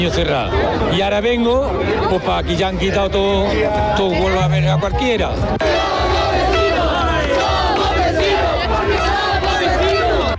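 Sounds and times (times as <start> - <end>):
speech: 0.0 - 6.6
celebrating crowd applauding: 5.6 - 10.3.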